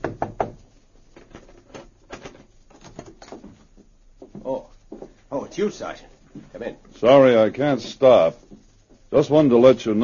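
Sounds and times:
knocking on a hotel room door: 0:00.0 - 0:00.6
speech: 0:05.5 - 0:08.4, 0:09.1 - 0:10.0.

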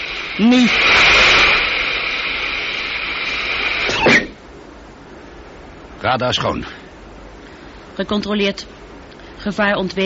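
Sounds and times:
rockets firing: 0:00.0 - 0:04.4
speech: 0:00.4 - 0:00.9, 0:06.0 - 0:06.8, 0:08.0 - 0:08.8, 0:09.4 - 0:10.0.

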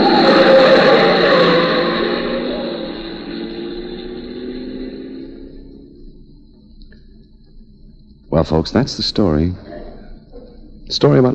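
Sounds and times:
car engine roaring as the car speeds around a sharp street corner: 0:00.0 - 0:07.1
speech: 0:08.4 - 0:09.7, 0:10.9 - 0:11.3.

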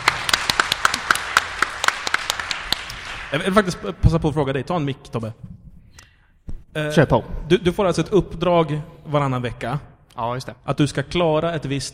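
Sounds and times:
audience applause: 0:00.0 - 0:03.5
speech: 0:03.3 - 0:05.6, 0:06.8 - 0:11.9.

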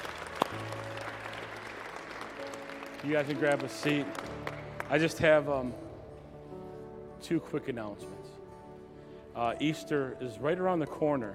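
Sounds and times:
audience hand clapping: 0:00.0 - 0:05.5
speech: 0:03.0 - 0:05.8, 0:07.2 - 0:08.3, 0:09.4 - 0:11.3.

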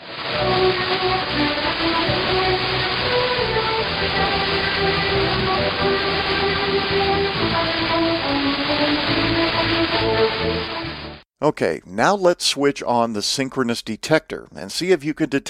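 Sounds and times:
radio hiss: 0:00.0 - 0:11.0
speech: 0:11.4 - 0:15.4.

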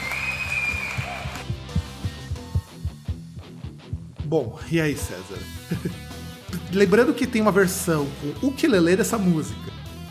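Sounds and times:
hand clapping: 0:00.0 - 0:02.2
speech: 0:04.3 - 0:06.0, 0:06.7 - 0:09.8
laughter: 0:05.5 - 0:06.2.

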